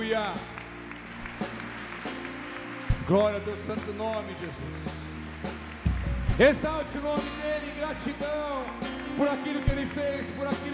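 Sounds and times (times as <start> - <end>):
audience clapping: 0.0 - 10.7
speech: 0.1 - 0.6, 3.1 - 5.6, 6.4 - 10.7.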